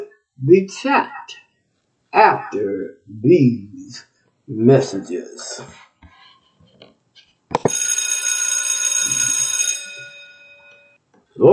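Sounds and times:
speech: 0.4 - 1.4, 2.1 - 5.8, 11.4 - 11.5
bell ringing: 7.7 - 11.0.

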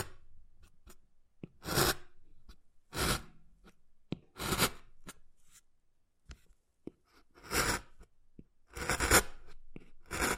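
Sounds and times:
wood carving scraping strokes: 1.6 - 2.1, 2.9 - 3.3, 4.4 - 5.6, 7.1 - 8.1, 8.7 - 10.3.

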